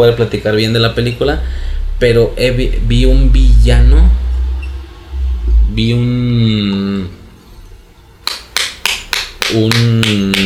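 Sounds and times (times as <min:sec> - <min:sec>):
speech: 0:00.0 - 0:04.2, 0:05.8 - 0:07.2, 0:09.5 - 0:10.4
hands clapping: 0:08.2 - 0:10.4.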